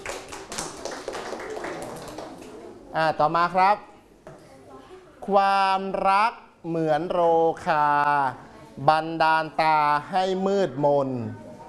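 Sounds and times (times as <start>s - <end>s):
group clapping hands: 0.0s - 2.7s
speech: 2.9s - 3.9s, 5.3s - 11.4s.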